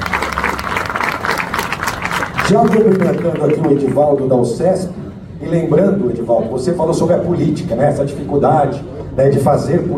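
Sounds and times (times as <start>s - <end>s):
audience applause: 0.0s - 4.2s
speech: 2.5s - 9.9s.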